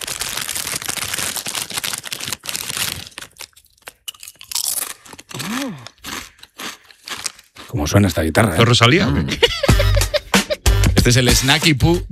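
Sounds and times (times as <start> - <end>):
eating crunchy potato chips: 0.0 - 8.5
speech: 7.7 - 9.7, 11.1 - 12.1
laughter: 9.0 - 10.6.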